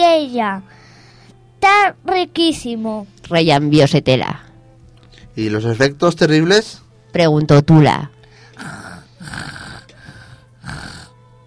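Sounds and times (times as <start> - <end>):
speech: 0.4 - 0.8, 1.6 - 4.5, 5.4 - 9.4
snoring: 8.5 - 11.2.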